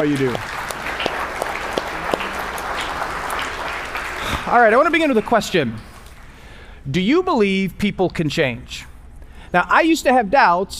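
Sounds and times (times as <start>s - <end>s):
speech: 0.0s - 0.5s, 4.4s - 5.9s, 6.8s - 8.9s, 9.5s - 10.7s
audience applause: 0.0s - 6.0s.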